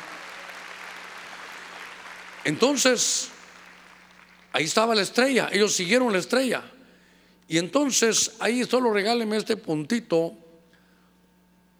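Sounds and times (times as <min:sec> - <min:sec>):
audience clapping: 0:00.0 - 0:04.5
speech: 0:02.4 - 0:03.4, 0:04.6 - 0:06.8, 0:07.5 - 0:10.4.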